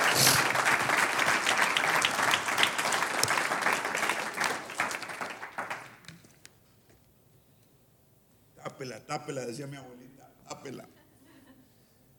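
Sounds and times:
audience applause: 0.0 - 6.0
speech: 8.8 - 10.0, 10.6 - 11.0.

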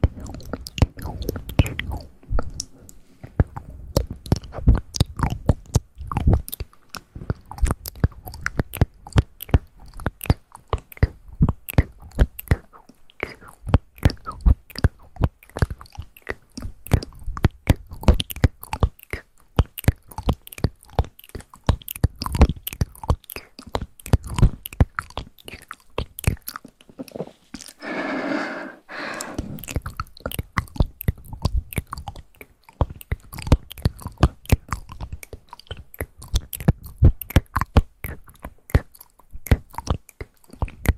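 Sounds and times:
wet mouth clicks, smacks and chewing: 0.0 - 40.9
breathy hissing sound: 27.8 - 29.6.

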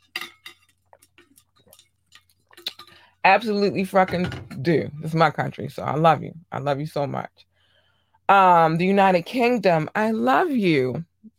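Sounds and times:
glass clinking while getting water: 0.0 - 0.8
speech: 3.2 - 7.5, 8.3 - 11.1.

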